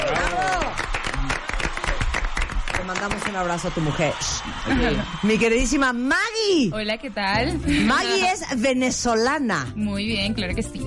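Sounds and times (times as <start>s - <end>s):
studio audience applause on a Spanish-language talk show: 0.0s - 6.4s
speech: 2.9s - 10.8s.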